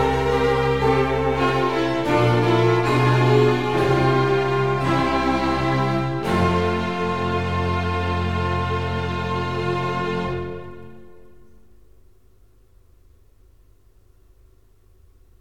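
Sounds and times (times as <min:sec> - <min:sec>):
concerto grosso allegro: 0:00.0 - 0:11.4.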